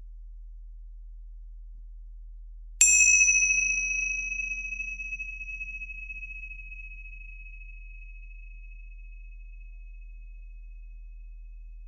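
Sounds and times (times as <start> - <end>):
low steady hum: 0.0 - 11.8
small hand cymbals struck to open meditation: 2.8 - 6.9.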